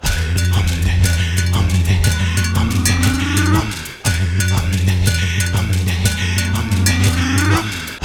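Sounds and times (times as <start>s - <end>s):
tribal vocals: 0.0s - 8.0s.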